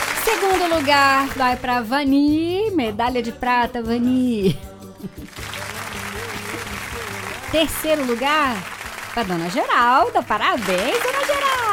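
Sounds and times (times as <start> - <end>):
audience applause for a gold medal winner: 0.0 - 0.8, 5.3 - 11.7
speech: 0.3 - 5.4, 7.5 - 11.4.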